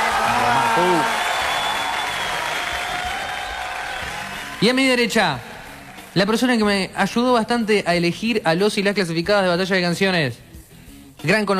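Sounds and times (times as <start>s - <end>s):
audience applause: 0.0s - 6.4s
speech: 0.8s - 1.2s, 4.6s - 5.5s, 6.2s - 10.5s, 11.2s - 11.5s.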